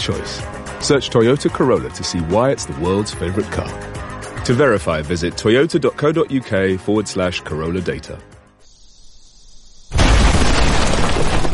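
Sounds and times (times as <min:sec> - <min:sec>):
speech: 0:00.0 - 0:08.3
faint hiss: 0:08.6 - 0:10.0
bomb explosion: 0:09.9 - 0:11.5.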